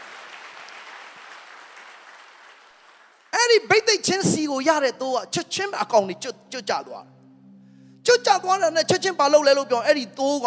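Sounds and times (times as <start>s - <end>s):
church congregation clapping hands during a Sunday sermon: 0.0s - 4.3s
speech: 3.5s - 7.2s, 8.0s - 10.4s.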